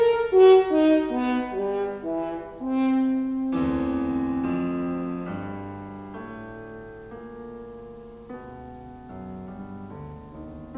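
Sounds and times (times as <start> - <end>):
horn sonata: 0.0 - 7.6.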